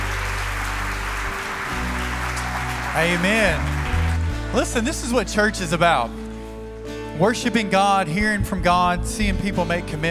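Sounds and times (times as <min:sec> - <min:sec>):
audience applause: 0:00.0 - 0:05.5
speech: 0:03.0 - 0:03.8, 0:04.5 - 0:06.2, 0:07.2 - 0:10.1.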